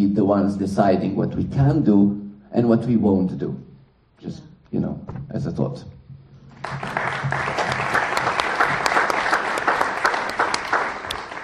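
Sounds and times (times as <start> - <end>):
speech: 0.0 - 6.0
audience clapping: 6.5 - 11.4.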